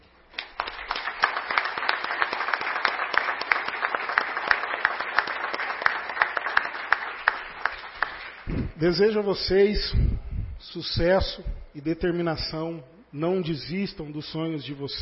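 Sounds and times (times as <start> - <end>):
audience applause: 0.4 - 8.5
speech: 8.8 - 15.0.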